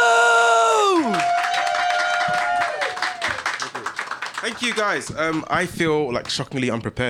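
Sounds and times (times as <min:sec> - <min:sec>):
audience applauding and cheering for a comedian at a stand-up show in Edinburgh: 0:00.0 - 0:05.5
speech: 0:04.5 - 0:07.0.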